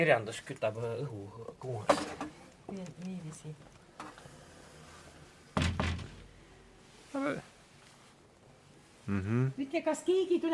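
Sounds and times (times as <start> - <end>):
speech: 0.0 - 3.8, 7.1 - 7.5, 9.1 - 10.5
door being opened: 5.6 - 6.2.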